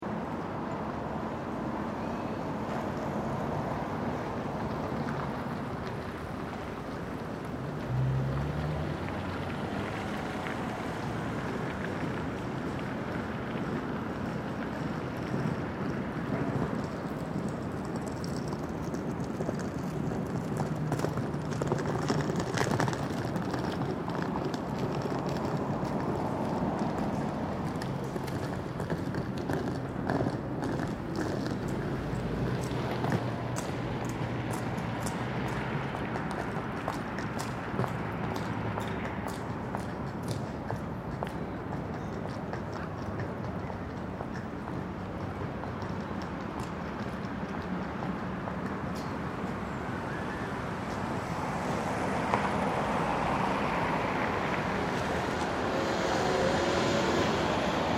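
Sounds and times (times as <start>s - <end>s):
cars passing by: 0.0s - 57.9s
people walking by: 0.2s - 57.9s.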